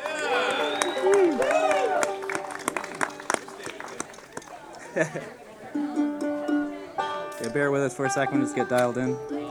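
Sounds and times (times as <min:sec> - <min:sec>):
crowd cheering and shouting: 0:00.0 - 0:03.8
audience clapping: 0:00.0 - 0:05.3
laughter: 0:00.0 - 0:07.0
speech: 0:05.0 - 0:05.4, 0:07.4 - 0:09.4.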